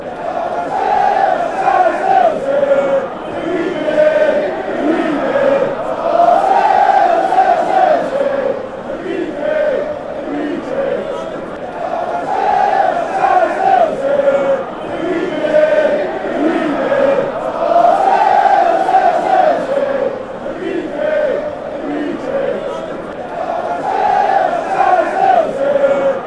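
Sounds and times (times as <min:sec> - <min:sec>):
football fans chanting: 0:00.0 - 0:26.2.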